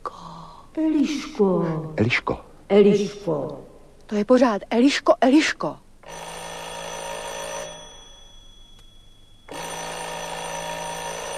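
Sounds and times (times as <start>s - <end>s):
speech: 0.8s - 6.3s
doorbell buzzing: 6.0s - 11.3s.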